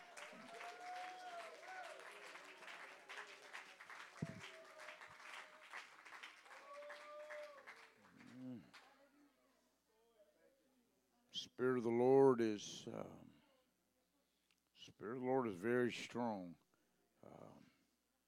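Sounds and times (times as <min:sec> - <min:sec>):
crowd clapping hands in praise: 0:00.0 - 0:08.9
speech: 0:11.5 - 0:13.3, 0:15.0 - 0:16.6.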